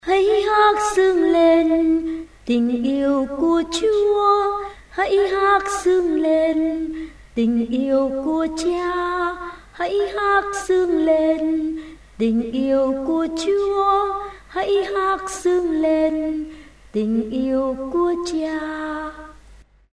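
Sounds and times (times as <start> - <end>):
soprano voice: 0.0 - 19.4.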